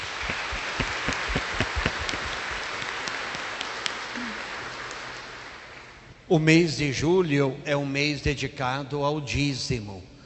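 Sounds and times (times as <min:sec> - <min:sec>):
audience applause: 0:00.0 - 0:06.1
speech: 0:06.3 - 0:10.1.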